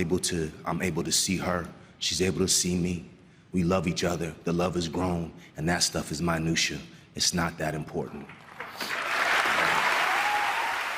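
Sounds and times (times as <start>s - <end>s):
speech: 0.0s - 9.0s
audience applause: 8.4s - 10.9s.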